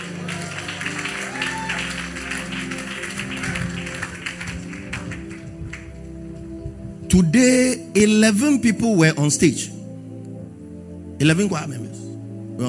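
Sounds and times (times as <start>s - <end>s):
audience clapping for the choir: 0.0s - 6.3s
speech: 7.1s - 9.7s, 11.2s - 12.0s.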